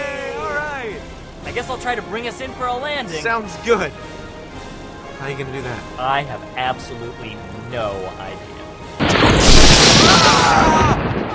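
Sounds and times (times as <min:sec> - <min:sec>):
speech: 0:01.6 - 0:04.2, 0:05.2 - 0:08.5, 0:10.4 - 0:11.3
lightning strike crack and boom: 0:09.0 - 0:11.3.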